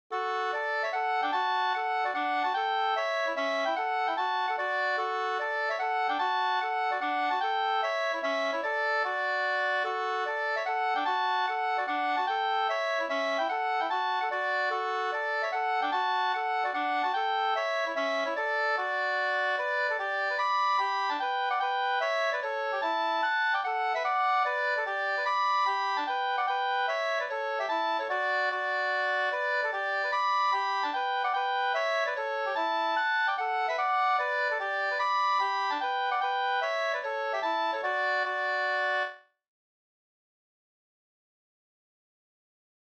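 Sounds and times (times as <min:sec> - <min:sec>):
hambo polka music: 0:00.1 - 0:39.2.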